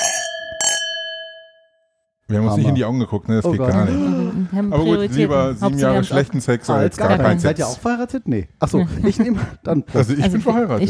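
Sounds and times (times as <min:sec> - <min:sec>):
wine glasses clinking in a toast: 0:00.0 - 0:01.7
speech: 0:02.3 - 0:10.8.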